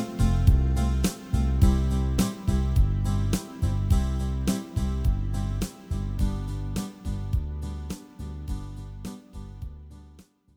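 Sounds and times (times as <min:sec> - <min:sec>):
C I V VI IV diatonic chord progression: 0:00.0 - 0:09.7.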